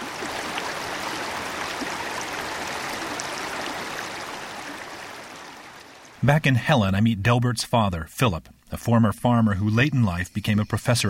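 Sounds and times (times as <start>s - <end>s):
flowing mountain stream: 0.0s - 6.7s
speech: 6.2s - 11.0s.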